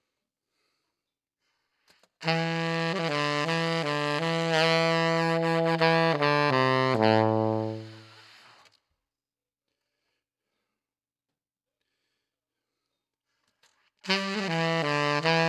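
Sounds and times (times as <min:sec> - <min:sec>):
saxophone: 0:02.2 - 0:08.4, 0:14.1 - 0:15.4.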